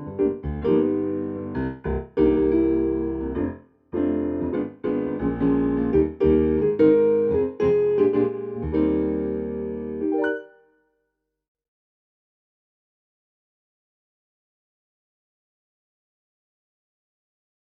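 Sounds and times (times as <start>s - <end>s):
jazz piano: 0.0s - 10.6s.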